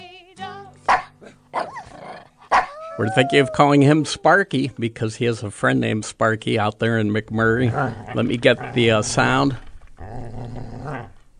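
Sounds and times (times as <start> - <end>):
hound dog barking: 0.9 - 1.9, 2.5 - 3.0
hound dog growling: 1.2 - 4.0, 7.5 - 11.3
hound dog whining: 1.2 - 4.3
speech: 3.0 - 9.7.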